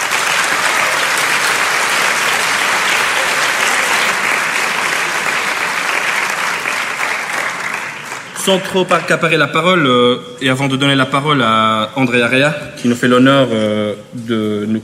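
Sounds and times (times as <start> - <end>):
audience applauding warmly: 0.0 - 8.7
speech: 8.4 - 14.8.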